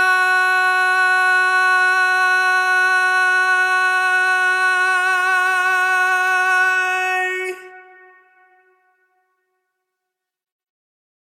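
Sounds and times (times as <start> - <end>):
a cappella lead singing: 0.0 - 8.8.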